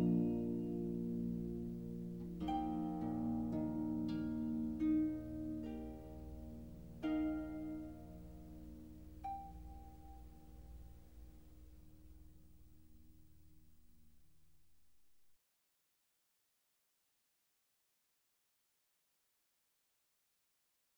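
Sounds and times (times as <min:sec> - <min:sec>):
instrumental harp praise music: 0:00.0 - 0:12.6.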